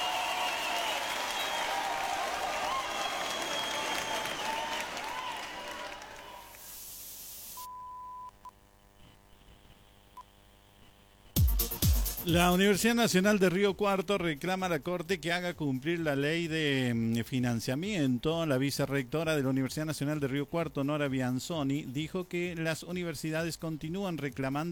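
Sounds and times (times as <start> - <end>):
crowd applause: 0.0 - 6.7
speech: 12.2 - 24.7.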